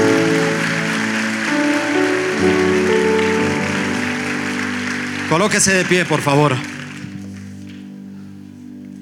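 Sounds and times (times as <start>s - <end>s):
audience applauding: 0.0s - 8.1s
speech: 5.3s - 6.7s.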